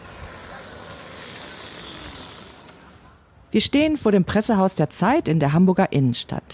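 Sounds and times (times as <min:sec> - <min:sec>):
electric motorcycle motor running: 0:00.0 - 0:03.3
speech: 0:03.5 - 0:06.5.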